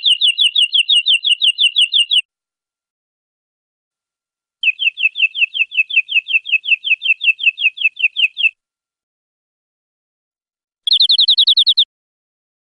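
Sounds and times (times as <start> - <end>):
European greenfinch buzzy trill: 0.0 - 2.2, 4.6 - 8.5, 10.9 - 11.8.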